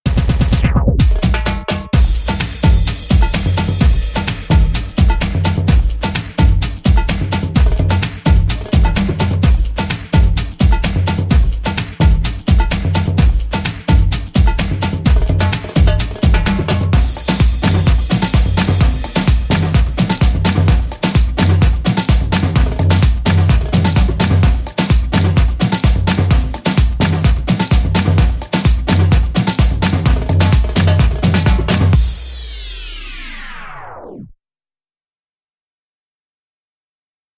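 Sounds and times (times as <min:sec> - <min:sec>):
music beat: 0:00.0 - 0:34.2.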